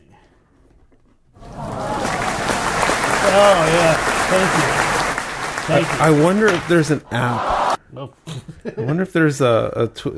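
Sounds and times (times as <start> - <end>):
canned applause sound effect: 1.4 - 7.8
speech: 3.4 - 4.8, 5.7 - 10.1.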